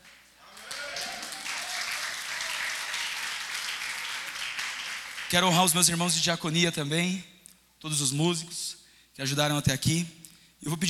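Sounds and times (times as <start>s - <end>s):
audience applauding: 0.0s - 5.6s
speech: 5.3s - 10.8s.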